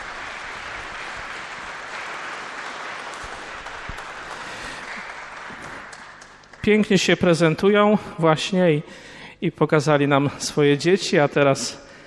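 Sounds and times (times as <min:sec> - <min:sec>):
audience applause: 0:00.0 - 0:06.6
speech: 0:06.6 - 0:11.8.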